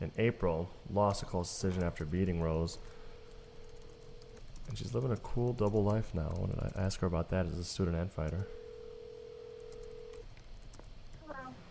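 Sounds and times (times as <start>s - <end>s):
speech: 0.0s - 3.0s, 4.7s - 8.6s
telephone tone of a phone call being placed: 2.9s - 4.4s, 8.4s - 10.2s.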